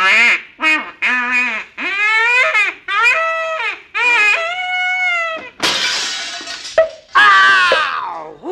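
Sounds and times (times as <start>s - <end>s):
loud nasal quacking calls: 0.0s - 5.5s
object crashing through glass window: 5.6s - 7.5s.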